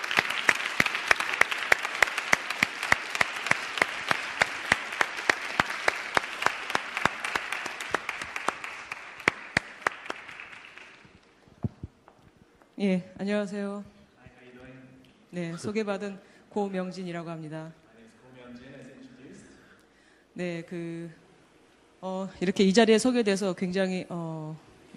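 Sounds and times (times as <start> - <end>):
audience applause welcoming a speaker on stage: 0.0 - 11.4
speech: 12.8 - 13.9, 15.3 - 17.8, 20.4 - 21.2, 22.0 - 24.9.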